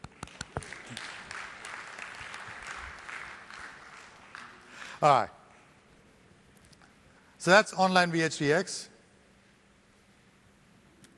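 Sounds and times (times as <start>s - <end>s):
audience applause: 0.2s - 4.9s
speech: 5.0s - 5.4s, 7.4s - 8.9s.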